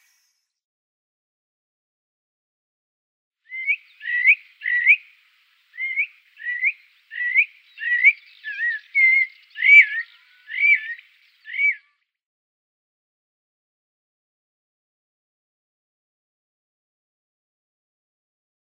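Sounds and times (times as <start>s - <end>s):
Eurasian Blackbird: 3.5s - 12.2s.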